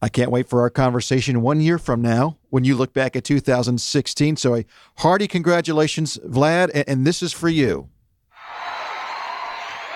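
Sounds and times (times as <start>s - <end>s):
speech: 0.0s - 8.6s
cheering in the background: 8.4s - 9.9s.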